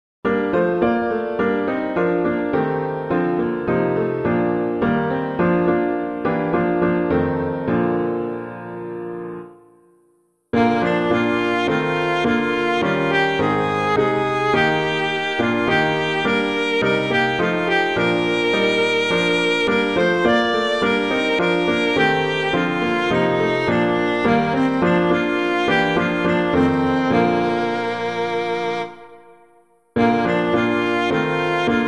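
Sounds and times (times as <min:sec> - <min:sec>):
hymn on piano: 0:00.2 - 0:31.8.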